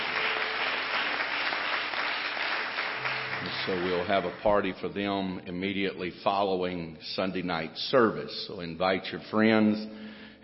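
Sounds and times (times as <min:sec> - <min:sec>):
audience hand clapping: 0:00.0 - 0:04.9
speech: 0:03.6 - 0:10.0.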